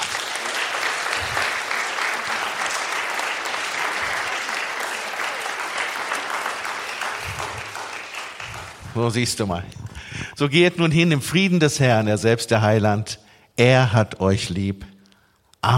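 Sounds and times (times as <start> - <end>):
audience clapping: 0.0 - 9.7
speech: 9.0 - 9.8, 10.4 - 14.9.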